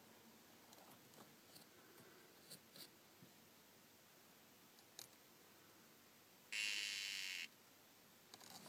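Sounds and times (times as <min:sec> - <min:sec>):
dyeing poison frog call: 0:06.5 - 0:07.5.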